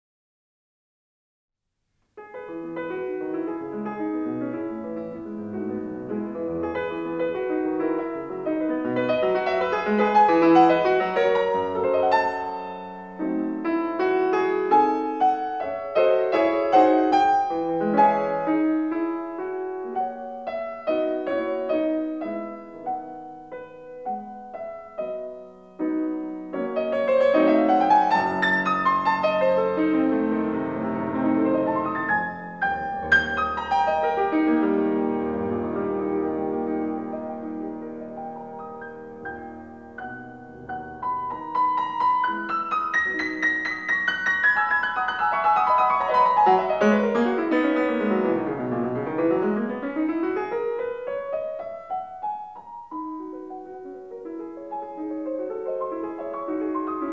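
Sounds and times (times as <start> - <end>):
piano sonata in E major: 1.7 - 57.1.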